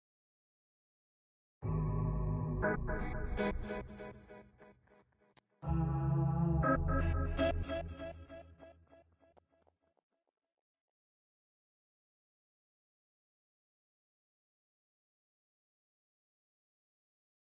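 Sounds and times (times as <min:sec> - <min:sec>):
guitar effects: 0:01.7 - 0:04.0, 0:05.6 - 0:08.6.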